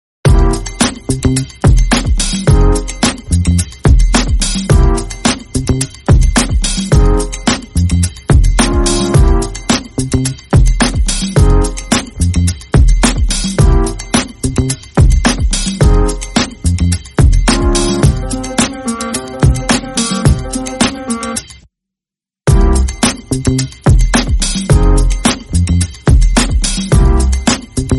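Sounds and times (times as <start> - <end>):
instrumental music: 0.3 - 21.6, 22.5 - 27.9.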